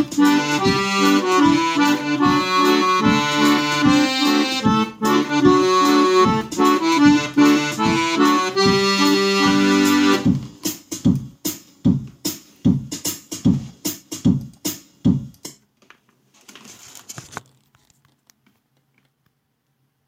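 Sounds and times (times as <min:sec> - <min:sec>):
drum: 0:00.0 - 0:15.6.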